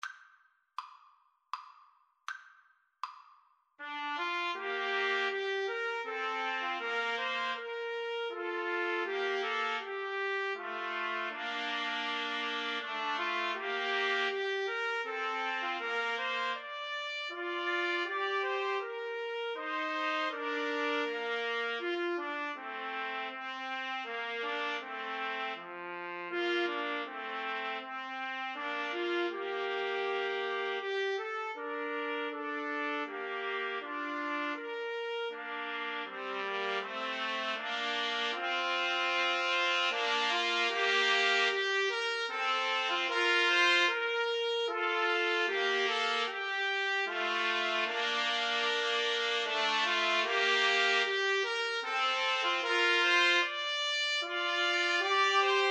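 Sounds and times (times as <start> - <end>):
trombone: 3.8 - 55.6
two trumpets: 3.8 - 55.6.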